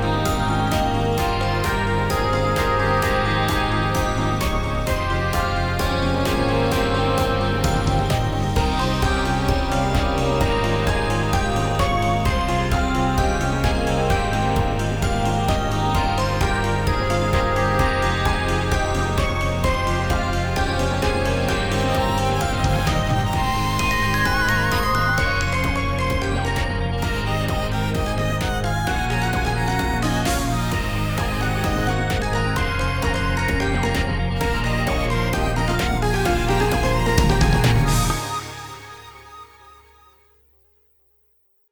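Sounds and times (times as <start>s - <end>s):
electro popping EDM new age fantasy background music: 0.0s - 39.9s.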